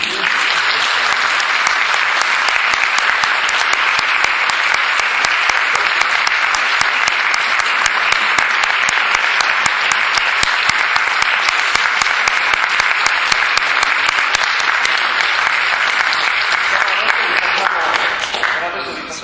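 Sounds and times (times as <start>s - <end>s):
audience applause: 0.0s - 19.1s.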